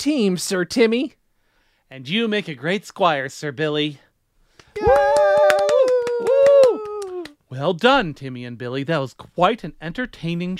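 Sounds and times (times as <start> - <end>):
speech: 0.0 - 1.2, 1.9 - 4.0, 7.5 - 10.5
applause: 4.8 - 7.4.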